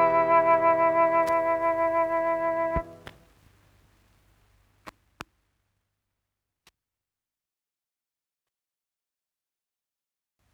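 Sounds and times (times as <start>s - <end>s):
sonata in E minor, adagio movement: 0.0s - 3.3s.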